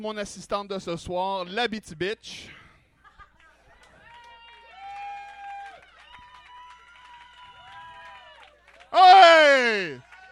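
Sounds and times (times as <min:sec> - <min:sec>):
speech: 0:00.0 - 0:02.6, 0:08.9 - 0:10.1
audience clapping: 0:03.8 - 0:10.3
crowd cheers and whoops: 0:04.0 - 0:10.3.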